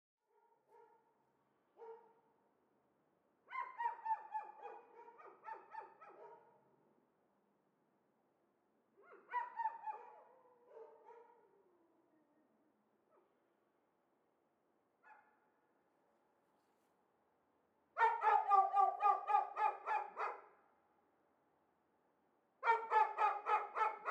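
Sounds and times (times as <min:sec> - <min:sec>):
dogs shut in cages barking excitedly: 0:03.5 - 0:06.5, 0:09.1 - 0:11.3, 0:18.0 - 0:20.5, 0:22.6 - 0:24.0.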